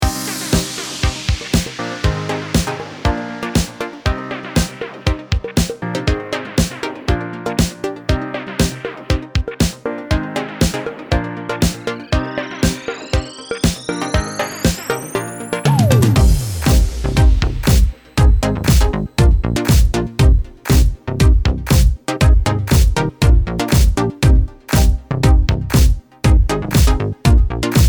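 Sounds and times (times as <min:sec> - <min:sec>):
funk music: 0:00.0 - 0:27.8.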